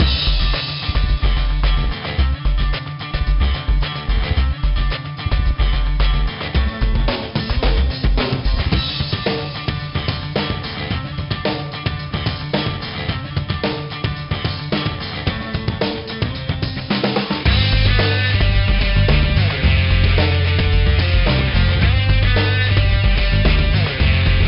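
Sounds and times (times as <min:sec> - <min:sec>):
rock menu music: 0:00.0 - 0:24.4.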